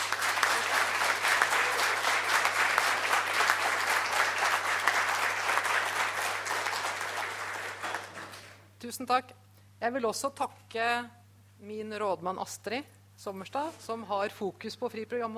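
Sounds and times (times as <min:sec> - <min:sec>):
audience applause: 0:00.0 - 0:08.6
speech: 0:08.9 - 0:15.3.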